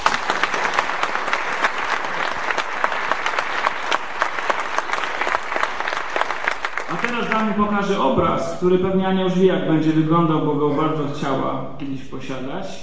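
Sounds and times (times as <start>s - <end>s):
audience applause: 0.0s - 8.0s
speech: 7.4s - 12.8s.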